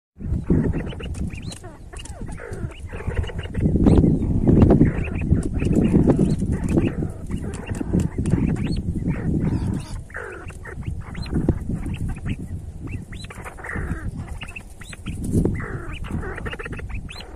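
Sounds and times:
see-see partridge chorus: 0.2 - 17.3.

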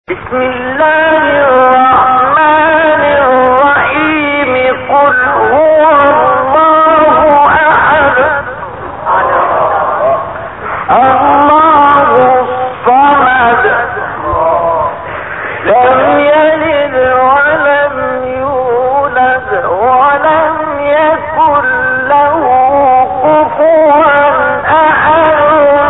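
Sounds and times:
Quran recitation: 0.1 - 25.8.

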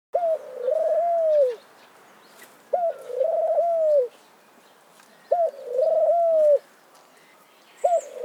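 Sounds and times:
Eurasian collared dove cooing: 0.2 - 1.6, 2.7 - 4.1, 5.3 - 6.7, 7.8 - 8.2.

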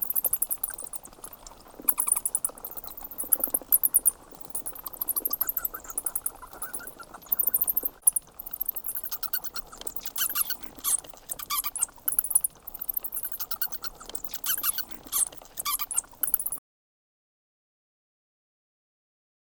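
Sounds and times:
flock of bats squeaking: 0.0 - 16.6.

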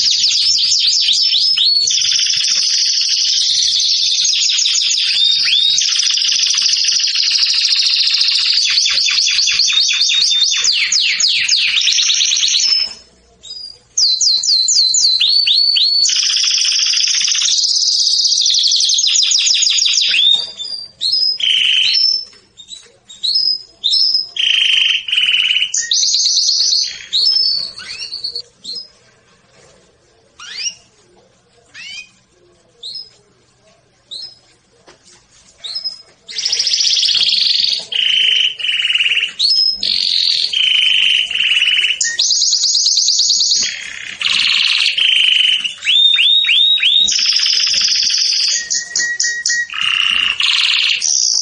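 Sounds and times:
canary singing: 0.0 - 29.3, 30.4 - 31.0, 31.7 - 33.2, 34.0 - 34.5, 35.6 - 51.4.

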